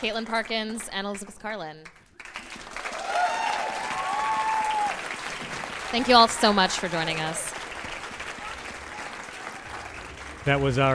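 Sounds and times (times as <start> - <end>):
speech: 0.0 - 2.0, 5.9 - 7.5, 10.4 - 10.9
audience applauding: 1.8 - 10.9
whistles and whoops: 2.9 - 5.0.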